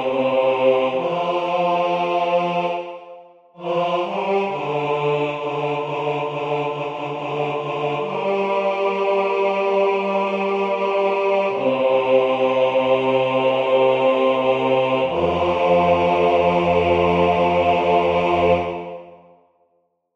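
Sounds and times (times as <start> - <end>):
bass part of a sung prayer: 0.0 - 19.2.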